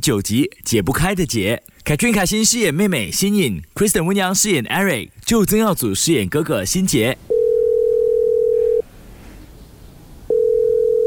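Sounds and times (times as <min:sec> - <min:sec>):
speech: 0:00.0 - 0:07.3
unanswered phone call ringback tone: 0:07.3 - 0:08.8, 0:10.3 - 0:11.0.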